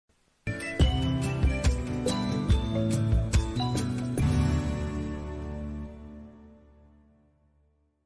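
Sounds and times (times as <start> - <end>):
intermission music: 0.5 - 6.7.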